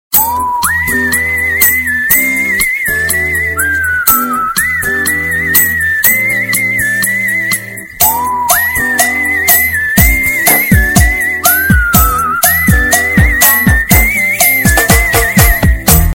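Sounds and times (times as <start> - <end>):
whistled iPhone 6s ringtone: 0.1 - 16.1.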